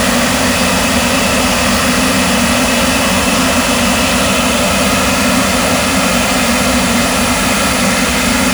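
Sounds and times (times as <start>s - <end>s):
L-39 aircraft starter: 0.0s - 8.5s.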